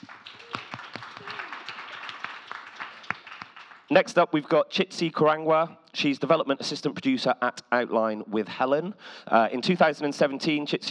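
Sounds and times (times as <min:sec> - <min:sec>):
audience applause: 0:00.0 - 0:04.0
speech: 0:03.9 - 0:10.9.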